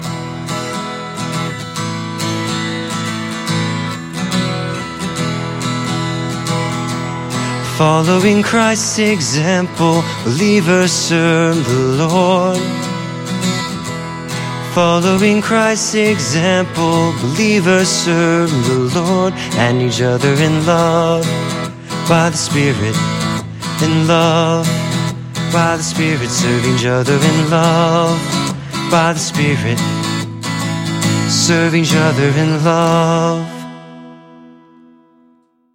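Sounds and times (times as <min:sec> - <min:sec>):
music: 0:00.0 - 0:35.7.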